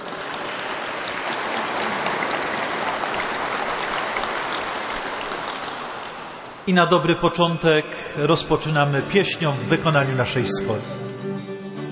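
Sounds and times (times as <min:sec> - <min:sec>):
audience applause: 0:00.0 - 0:06.7
speech: 0:06.7 - 0:11.1.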